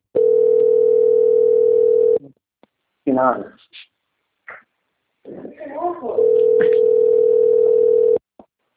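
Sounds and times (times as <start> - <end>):
steady electronic telephone tone: 0.2 - 2.2, 6.2 - 8.2
speech: 3.2 - 3.6.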